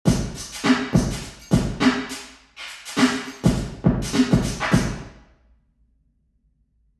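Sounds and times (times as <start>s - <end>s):
drum hit in council chamber impulse response: 0.1s - 2.2s, 2.9s - 5.1s.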